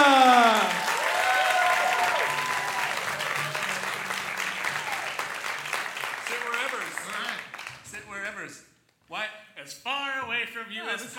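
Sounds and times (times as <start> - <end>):
live audience applause welcoming guests onto a comedy stage: 0.0 - 7.9.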